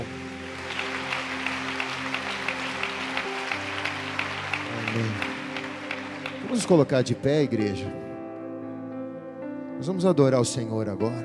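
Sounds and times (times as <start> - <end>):
audience applause: 0.0 - 7.5
low keyboard chords: 0.0 - 11.2
speech: 6.6 - 8.0, 9.8 - 11.2.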